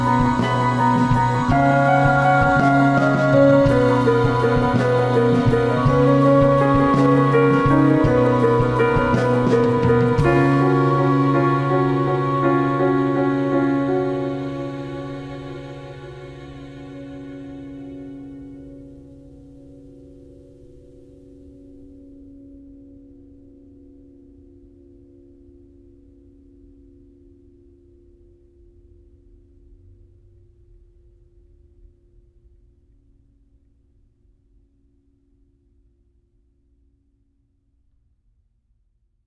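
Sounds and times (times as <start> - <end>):
instrumental music: 0.0 - 20.0.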